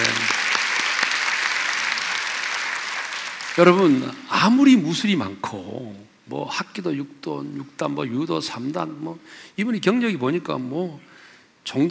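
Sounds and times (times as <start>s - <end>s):
people applauding: 0.0s - 4.2s
speech: 3.6s - 11.8s.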